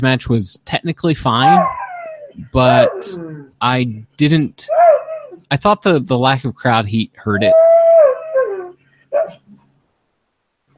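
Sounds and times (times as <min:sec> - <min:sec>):
speech: 0:00.0 - 0:01.8, 0:02.4 - 0:04.9, 0:05.5 - 0:07.7
dog howling: 0:01.4 - 0:03.6, 0:04.7 - 0:05.4, 0:07.4 - 0:09.5.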